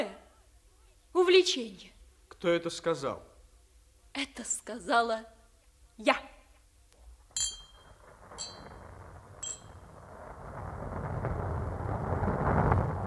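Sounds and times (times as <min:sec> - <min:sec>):
speech: 0:01.3 - 0:03.3, 0:04.2 - 0:05.4, 0:06.0 - 0:06.3
thunderstorm thunder: 0:07.7 - 0:13.0.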